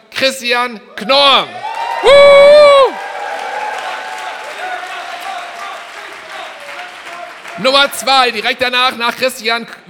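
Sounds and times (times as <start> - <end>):
speech: 0.2 - 3.0, 7.6 - 9.8
audience applause: 1.6 - 8.8.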